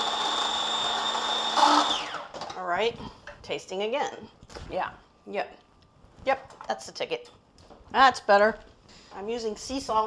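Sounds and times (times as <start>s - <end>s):
small electric grinder whirring as it blends garlic and salt: 0.0s - 2.3s
speech: 2.7s - 5.6s, 6.2s - 10.0s.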